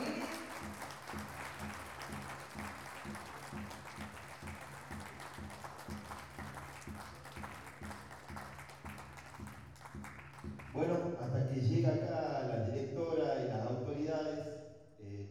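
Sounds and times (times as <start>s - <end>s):
audience applauding: 0.0s - 10.9s
speech: 10.8s - 14.5s.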